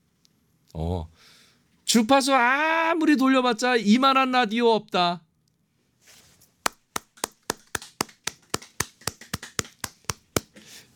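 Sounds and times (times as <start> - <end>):
speech: 0.7 - 5.2
three people clapping in a studio: 6.7 - 10.6.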